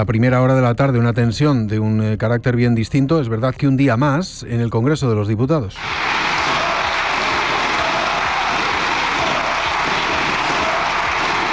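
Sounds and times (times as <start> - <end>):
speech: 0.0 - 6.3
applause in parliament: 5.8 - 11.5
people shouting for resignation: 5.8 - 11.5.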